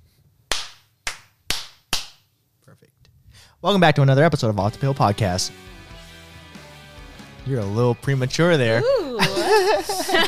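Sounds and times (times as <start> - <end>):
sharp hand claps: 0.5 - 2.3
speech: 2.7 - 5.8, 7.5 - 10.2
laughter: 8.8 - 10.2.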